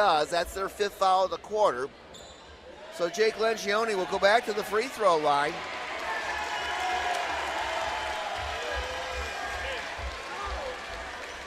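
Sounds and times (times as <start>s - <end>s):
speech: 0.0s - 2.0s, 3.0s - 5.8s
gym crowd applause for substitutes: 5.5s - 11.4s.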